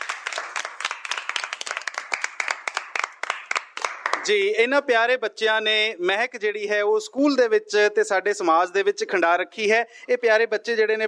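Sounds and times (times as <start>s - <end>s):
audience clapping for schoolchildren at a school: 0.0s - 4.5s
speech: 4.2s - 11.0s.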